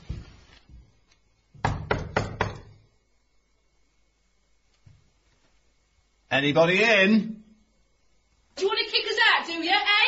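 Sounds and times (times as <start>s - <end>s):
knocking on a door: 1.6s - 2.8s
speech: 6.4s - 7.4s, 8.6s - 10.0s.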